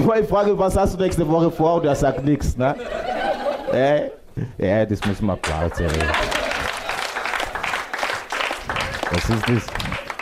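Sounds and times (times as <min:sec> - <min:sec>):
speech: 0:00.1 - 0:06.4, 0:09.1 - 0:09.9
laughter: 0:01.4 - 0:04.2, 0:05.4 - 0:07.7
audience applause at a dinner show: 0:05.4 - 0:10.2.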